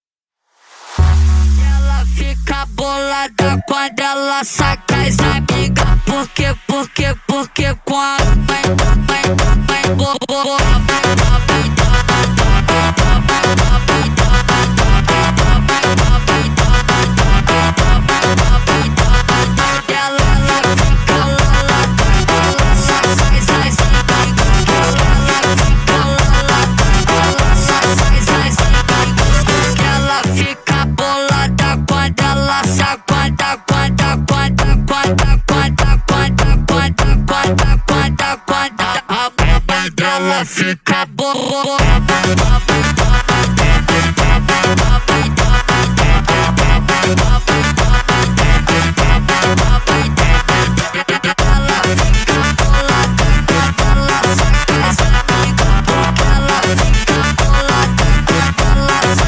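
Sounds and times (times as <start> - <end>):
phonk montagem music: 1.0 - 59.2.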